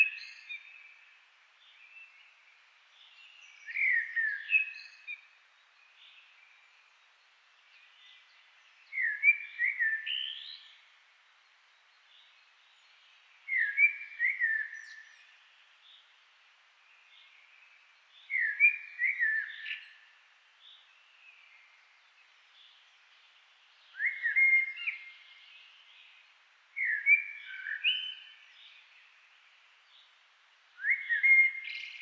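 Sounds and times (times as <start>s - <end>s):
Eurasian blackbird singing: 0.0s - 1.0s, 3.0s - 5.3s, 8.8s - 10.8s, 13.5s - 16.0s, 18.2s - 21.7s, 23.8s - 26.2s, 26.8s - 29.0s, 30.8s - 31.9s.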